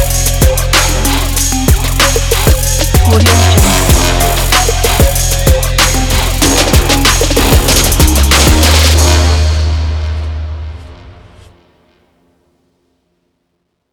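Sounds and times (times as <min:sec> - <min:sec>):
energetic trap music: 0:00.0 - 0:09.9.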